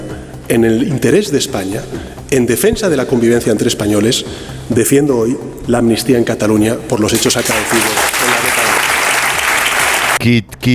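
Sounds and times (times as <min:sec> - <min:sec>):
speech: 0:00.5 - 0:08.3, 0:10.2 - 0:10.7
Comité Federal members applauding: 0:07.0 - 0:10.2.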